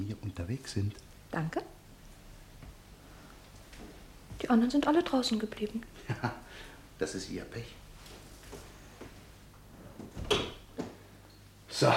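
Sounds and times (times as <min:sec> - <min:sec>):
speech: 0:00.0 - 0:01.8, 0:04.4 - 0:07.8
door being closed: 0:10.0 - 0:11.0.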